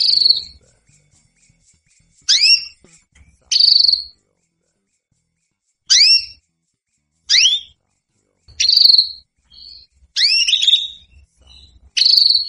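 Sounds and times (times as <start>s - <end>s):
female Belgian canary calling for mating: 0.0s - 0.7s, 1.4s - 2.8s, 3.5s - 4.2s, 5.9s - 6.4s, 7.3s - 7.8s, 8.5s - 12.4s.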